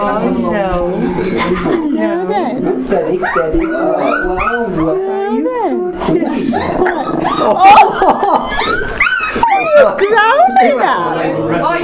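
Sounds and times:
speech: 0.0 - 11.8
laughter: 1.0 - 2.2, 6.0 - 10.8
dogs barking, yipping and whimpering at a visitor: 2.7 - 5.4, 6.4 - 10.8.

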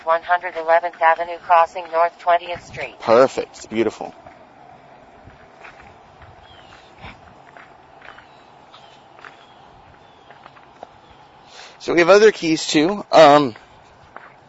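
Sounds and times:
speech: 0.0 - 4.2, 11.8 - 13.6
slow footsteps walking with a cane: 0.0 - 11.8, 13.2 - 14.4.

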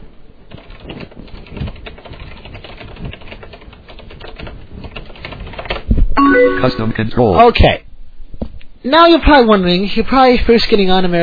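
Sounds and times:
computer keyboard typing a chat message on America Online: 0.5 - 5.9
speech: 6.5 - 7.8, 8.8 - 11.2.

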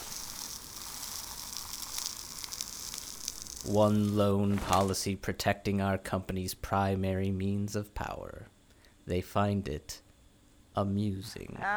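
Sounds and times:
ants burning and their guts popping: 0.0 - 5.1
speech: 3.6 - 8.5, 9.1 - 10.0, 10.8 - 11.7.

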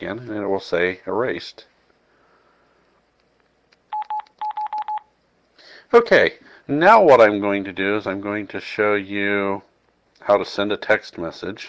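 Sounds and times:
speech: 0.0 - 1.7, 5.9 - 11.6
phone keypad button beeps: 3.9 - 5.1.

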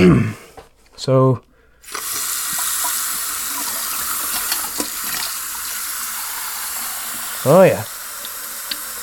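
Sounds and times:
speech: 1.0 - 2.0, 7.4 - 8.0
tap water gushing into a sink while washing hands with soap: 1.9 - 9.0.

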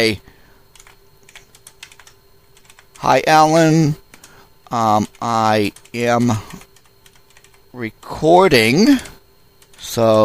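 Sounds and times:
speech: 0.0 - 0.3, 3.0 - 4.0, 4.7 - 6.6, 7.7 - 9.1, 9.8 - 10.2
typing on a computer keyboard: 0.7 - 3.0, 5.1 - 7.6.

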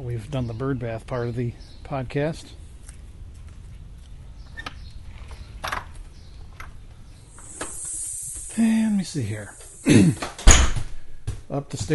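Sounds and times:
speech: 0.0 - 2.6, 8.6 - 10.4, 11.5 - 11.9
pressure released from a hose: 7.2 - 10.8.

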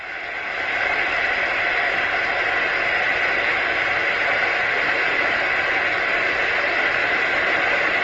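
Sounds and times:
electric kettle boiling: 0.0 - 8.0.

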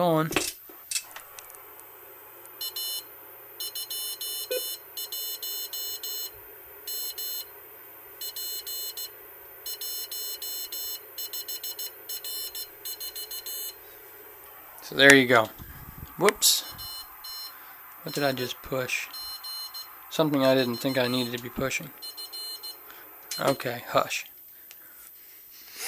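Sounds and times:
speech: 0.0 - 0.6, 15.0 - 15.6, 18.1 - 19.2, 20.2 - 22.0, 23.4 - 24.3
Morse code beeps from radio interface box: 2.6 - 6.3, 6.9 - 7.5, 8.2 - 13.8, 16.6 - 23.6.

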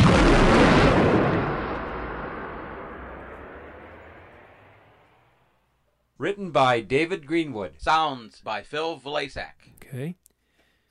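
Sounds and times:
explosion-like burst sound logo of the video game GMA Tank Commander: 0.0 - 5.5
speech: 6.2 - 10.2.

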